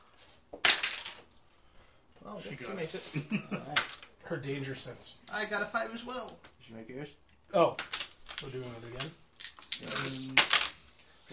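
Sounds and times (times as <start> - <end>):
dice clattering on a table: 0.6 - 1.4, 7.8 - 10.8
speech: 2.3 - 9.2, 9.8 - 10.6.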